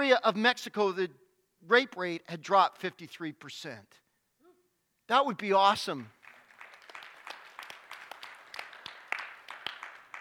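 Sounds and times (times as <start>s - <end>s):
speech: 0.0s - 4.0s, 5.1s - 6.2s
weak audience applause: 6.1s - 10.1s.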